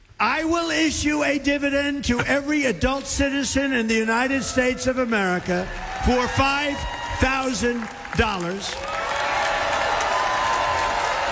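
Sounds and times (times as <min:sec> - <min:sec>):
speech: 0:00.4 - 0:09.0
audience applause after Donald Trump announces a dividend: 0:04.6 - 0:11.3.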